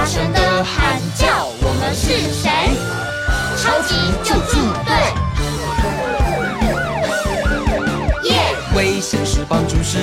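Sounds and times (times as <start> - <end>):
speech: 0.1 - 1.2
emergency vehicle siren: 2.5 - 8.9
music with thumping beat: 4.4 - 10.0.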